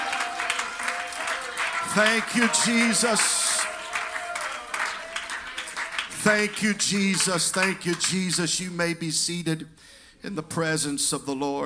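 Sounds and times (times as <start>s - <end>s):
audience clapping hands: 0.0s - 8.6s
speech: 2.0s - 3.4s, 6.3s - 11.6s.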